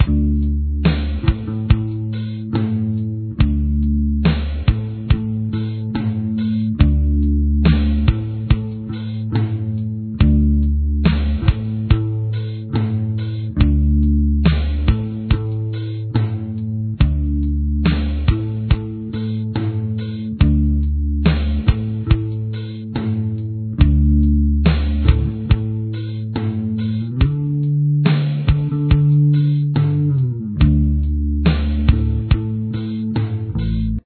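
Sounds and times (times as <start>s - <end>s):
bass: 0.0s - 34.0s.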